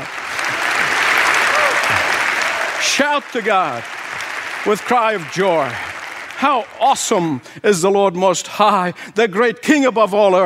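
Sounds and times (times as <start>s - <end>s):
crowd clapping hands: 0.0s - 7.4s
speech: 2.9s - 4.0s, 4.6s - 10.4s.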